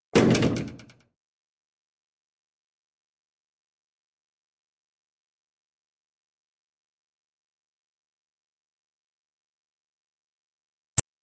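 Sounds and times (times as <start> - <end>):
doors: 0.0 - 1.2.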